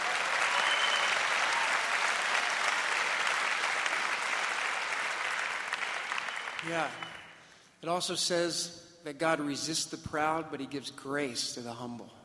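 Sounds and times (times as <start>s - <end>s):
audience applause: 0.0s - 7.4s
speech: 6.6s - 7.2s, 7.8s - 12.2s.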